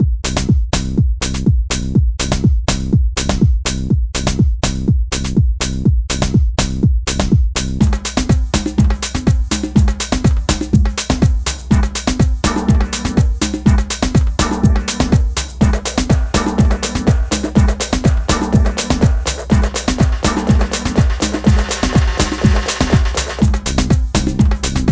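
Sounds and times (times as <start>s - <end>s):
simple dance beat with bass: 0.0s - 24.9s.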